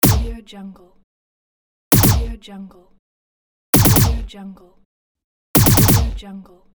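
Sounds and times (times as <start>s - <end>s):
futuristic weapon: 0.0s - 0.4s, 1.9s - 2.4s, 3.8s - 4.3s, 5.6s - 6.2s.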